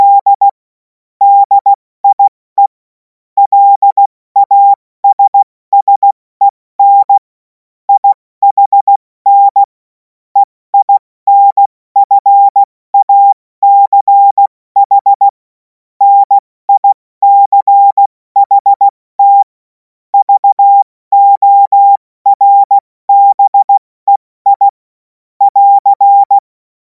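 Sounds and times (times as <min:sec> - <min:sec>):
CW Morse code beeps: 0:00.0 - 0:00.6, 0:01.2 - 0:02.8, 0:03.4 - 0:06.2, 0:06.8 - 0:07.2, 0:07.9 - 0:09.7, 0:10.4 - 0:15.4, 0:16.0 - 0:19.5, 0:20.2 - 0:24.8, 0:25.4 - 0:26.4.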